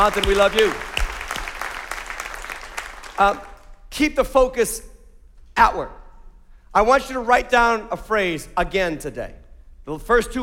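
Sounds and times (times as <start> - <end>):
speech: 0.0 - 0.9, 3.2 - 4.9, 5.6 - 6.0, 6.8 - 10.4
audience in North Attleboro applauding: 0.0 - 3.6.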